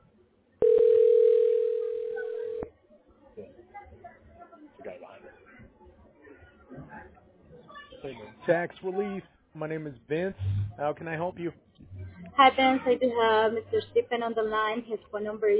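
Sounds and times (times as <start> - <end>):
telephone ringing tone: 0.6 - 2.7
speech: 8.5 - 11.6, 12.4 - 15.5.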